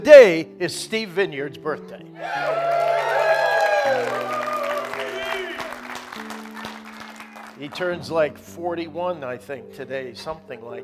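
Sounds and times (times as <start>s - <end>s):
speech: 0.0s - 2.8s, 7.6s - 10.8s
church congregation clapping: 2.2s - 8.0s.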